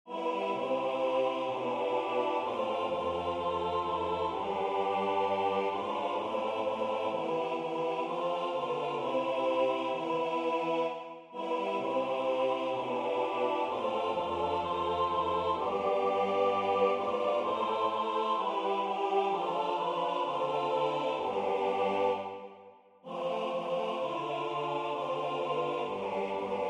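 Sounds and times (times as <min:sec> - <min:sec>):
SATB four-part choir singing: 0:00.0 - 0:26.6.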